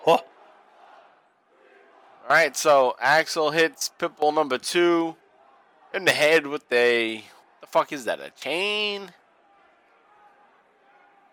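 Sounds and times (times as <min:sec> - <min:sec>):
speech: 0:00.0 - 0:00.3, 0:02.3 - 0:05.2, 0:05.9 - 0:09.2
wrestling crowd chanting: 0:00.0 - 0:02.6, 0:05.0 - 0:06.2, 0:07.0 - 0:07.8, 0:08.8 - 0:11.3.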